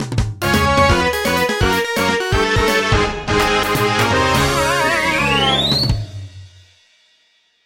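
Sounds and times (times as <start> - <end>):
MIDI game over jingle: 0.4 - 6.2.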